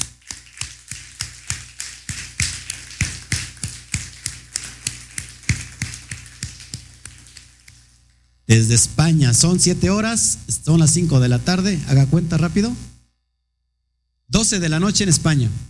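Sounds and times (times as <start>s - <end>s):
steady evenly spaced handclaps: 0.0s - 8.2s
speech: 8.5s - 12.9s, 14.5s - 15.6s.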